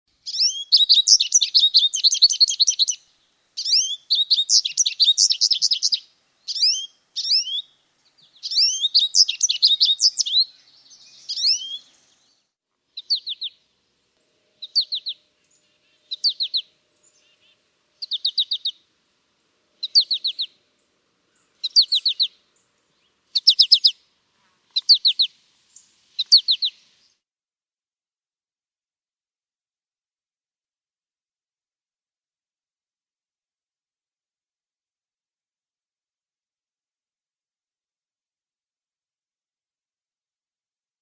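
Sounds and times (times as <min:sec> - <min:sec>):
American goldfinch bird song: 0:00.2 - 0:24.1, 0:24.7 - 0:27.2.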